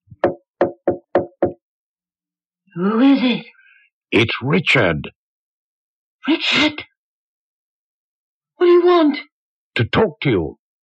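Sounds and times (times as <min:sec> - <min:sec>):
soft tapping on a door: 0:00.1 - 0:01.6
speech: 0:02.8 - 0:05.2, 0:06.2 - 0:06.9, 0:08.6 - 0:10.6.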